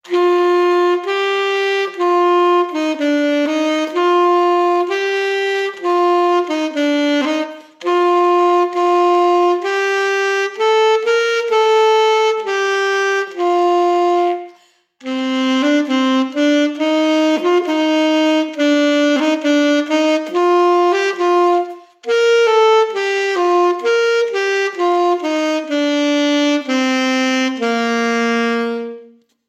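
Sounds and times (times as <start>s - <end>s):
saxophone: 0.0s - 29.4s.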